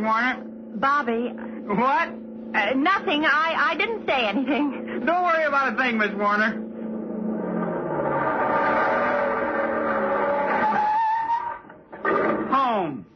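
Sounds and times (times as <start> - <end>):
speech: 0.0 - 6.6, 12.6 - 13.1
car engine roaring at 65 miles an hour: 0.0 - 12.6
tyres squealing: 4.8 - 12.7.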